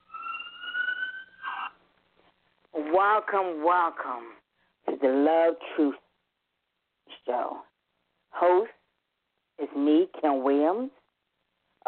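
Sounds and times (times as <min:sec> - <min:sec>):
alarm siren: 0:00.0 - 0:01.7
speech: 0:02.9 - 0:04.4, 0:05.0 - 0:06.0, 0:07.2 - 0:07.7, 0:08.4 - 0:08.8, 0:09.6 - 0:11.0.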